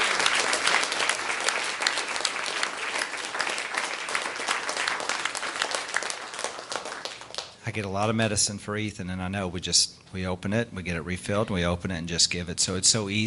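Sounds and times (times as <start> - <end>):
audience clapping in praise: 0.0 - 7.6
speech: 7.7 - 13.2.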